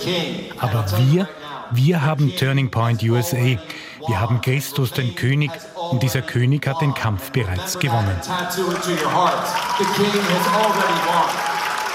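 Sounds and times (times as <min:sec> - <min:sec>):
speech: 0:00.0 - 0:11.4
audience cheering and clapping at a political rally: 0:08.2 - 0:11.9.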